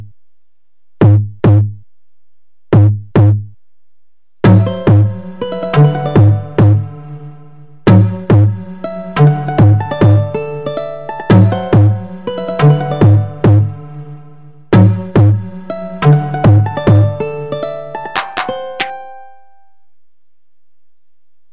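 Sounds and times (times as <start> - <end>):
drum beat: 1.0 - 1.7, 2.7 - 3.5, 4.5 - 6.9, 7.9 - 8.6, 9.2 - 10.3, 11.3 - 13.7, 14.7 - 17.2.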